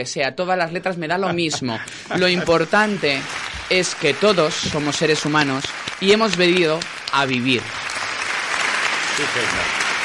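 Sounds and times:
speech: 0.0 - 7.9, 9.2 - 9.8
laughter: 1.2 - 3.3
live audience applause: 1.9 - 10.0.

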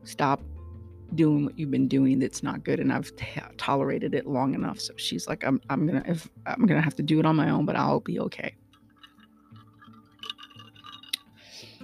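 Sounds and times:
speech: 0.0 - 0.5, 1.1 - 8.6
ice clinking in a drink: 8.7 - 11.4.

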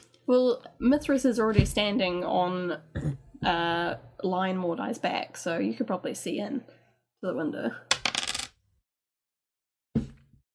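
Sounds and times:
speech: 0.3 - 7.9
dice clattering across a table: 7.9 - 8.6.

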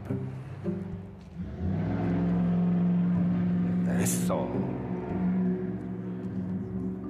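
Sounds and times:
jeep driving past: 1.2 - 7.0.

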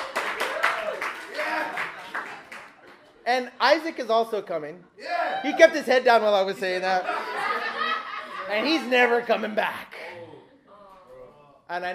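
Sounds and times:
audience clapping: 0.0 - 3.2
speech: 3.3 - 7.4, 8.5 - 9.9, 11.7 - 11.9
laughter: 6.7 - 9.5.

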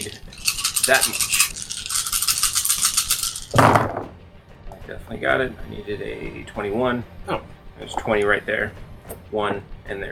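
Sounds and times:
dice rattling: 0.0 - 3.9
speech: 0.9 - 1.4, 4.9 - 10.1.

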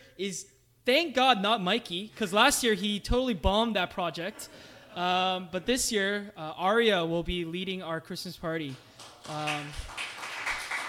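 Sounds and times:
speech: 0.2 - 9.9
applause: 8.7 - 10.8.

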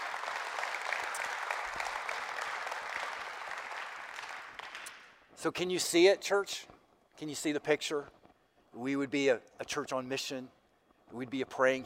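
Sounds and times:
round of applause: 0.0 - 5.0
speech: 5.4 - 11.8.

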